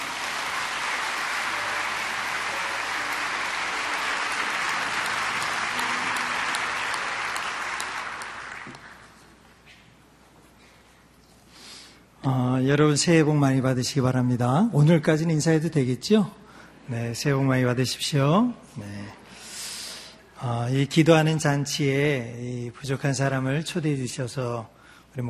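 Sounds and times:
audience applause: 0.0 - 9.2
speech: 12.3 - 19.0, 20.5 - 25.2.

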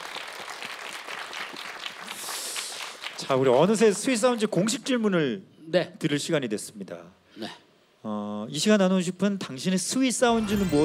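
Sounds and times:
audience applause and cheering: 0.0 - 3.3
speech: 3.2 - 10.8.

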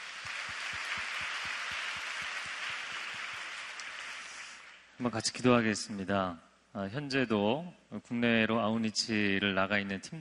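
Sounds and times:
audience applause: 0.0 - 4.8
speech: 5.0 - 10.2.

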